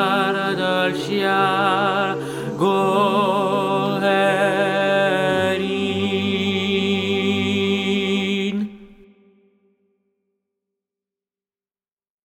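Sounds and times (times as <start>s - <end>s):
high alto voices singing: 0.0s - 9.4s.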